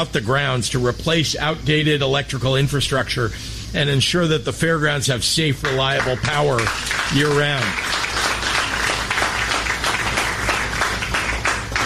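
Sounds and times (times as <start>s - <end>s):
speech: 0.0s - 8.3s
audience applause: 5.6s - 11.8s.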